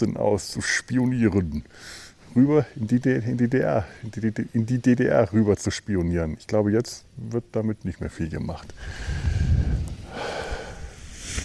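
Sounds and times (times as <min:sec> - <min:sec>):
speech: 0:00.0 - 0:09.6
rustling of paraglider wings: 0:08.7 - 0:11.4.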